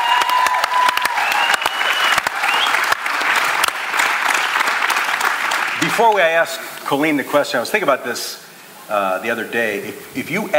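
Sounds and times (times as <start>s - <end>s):
audience applause at a church remembrance gathering: 0.0s - 6.4s
speech: 6.0s - 10.5s.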